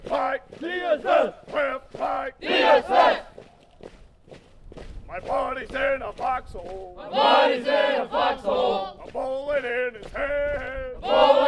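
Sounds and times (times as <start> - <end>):
soldiers shouting in unison during army drill exercises: 0.1 - 3.3, 7.0 - 9.0, 10.9 - 11.4
speech: 0.1 - 3.3, 5.1 - 11.4.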